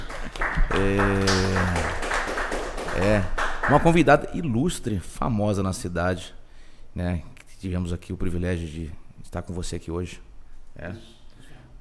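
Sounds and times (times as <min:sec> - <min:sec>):
applause: 0:00.0 - 0:04.3
speech: 0:00.8 - 0:02.0, 0:03.0 - 0:06.4, 0:07.0 - 0:10.2, 0:10.8 - 0:11.2.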